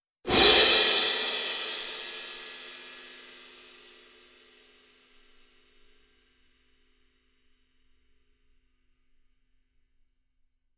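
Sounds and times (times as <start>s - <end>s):
cymbals: 0.3s - 6.0s.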